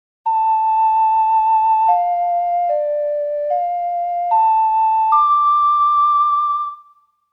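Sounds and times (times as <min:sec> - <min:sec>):
ocarina melody: 0:00.3 - 0:07.1.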